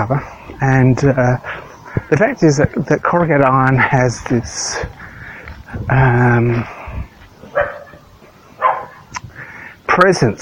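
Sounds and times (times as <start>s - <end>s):
speech: 0.0s - 5.0s, 5.7s - 6.8s, 10.0s - 10.3s
dogs barking in Broken Hill: 7.4s - 9.1s.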